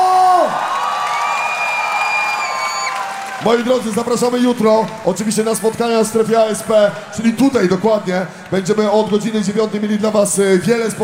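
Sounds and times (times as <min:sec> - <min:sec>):
concert crowd cheering and whooping: 0:00.0 - 0:10.3
concert crowd clapping: 0:00.7 - 0:05.9, 0:08.4 - 0:09.5
speech: 0:03.4 - 0:11.0.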